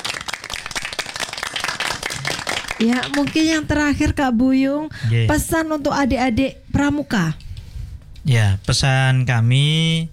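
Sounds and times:
audience clapping at a scout gathering: 0:00.0 - 0:03.6
speech: 0:02.8 - 0:07.4, 0:08.2 - 0:10.1.

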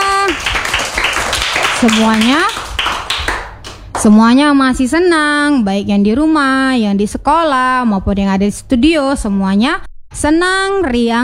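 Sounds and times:
group clapping hands: 0:00.0 - 0:04.3
speech: 0:00.3 - 0:00.5, 0:01.8 - 0:02.6, 0:04.0 - 0:11.2.

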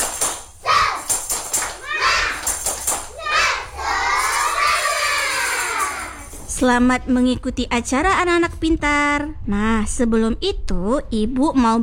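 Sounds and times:
children doing a cheering clap: 0:00.0 - 0:06.5
speech: 0:06.6 - 0:11.8.

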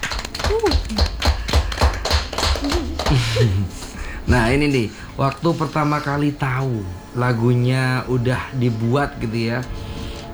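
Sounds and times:
crowd clapping: 0:00.0 - 0:06.4
laughter: 0:00.0 - 0:09.7
voices calling out and cheering: 0:00.0 - 0:10.3
speech: 0:03.4 - 0:09.8.

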